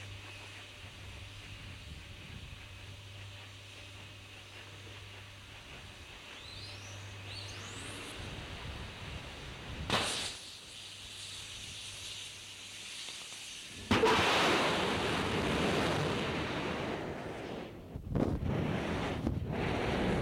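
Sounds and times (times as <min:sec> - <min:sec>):
STS-1 space shuttle idling and launch: 0:07.7 - 0:12.5, 0:13.2 - 0:20.1.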